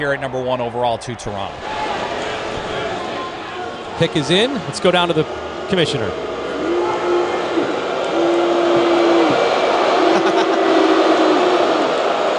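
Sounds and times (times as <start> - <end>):
speech: 0.0 - 1.8, 4.0 - 6.7
draft arena crowd roaring: 0.0 - 12.3
laughter: 9.4 - 10.9.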